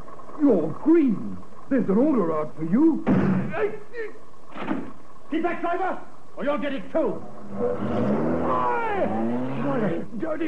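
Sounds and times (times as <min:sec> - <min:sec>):
speech: 0:00.4 - 0:10.4
whining tone sweeping downward in pitch: 0:07.0 - 0:10.2
getaway car engine roaring off: 0:07.1 - 0:10.1.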